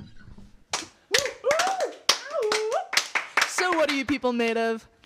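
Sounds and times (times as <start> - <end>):
people clapping: 0.7 - 4.8
people cheering: 1.1 - 4.1
speech: 3.8 - 4.9.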